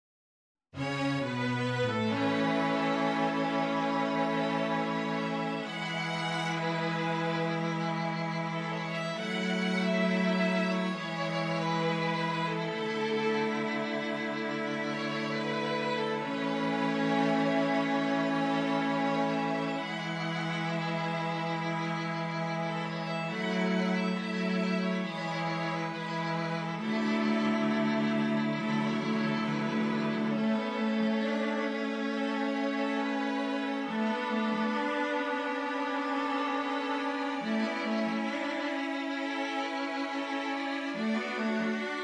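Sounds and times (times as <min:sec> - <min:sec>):
string quintet playing: 0:00.8 - 0:42.0.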